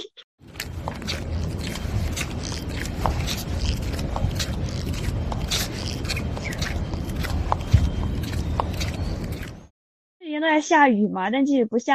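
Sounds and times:
footsteps in Crocs clogs: 0:00.4 - 0:09.7
speech: 0:10.4 - 0:11.9.

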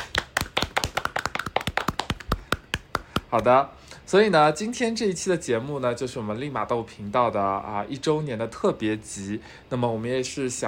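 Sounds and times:
applause from a few people: 0:00.0 - 0:03.2
speech: 0:03.3 - 0:10.6.

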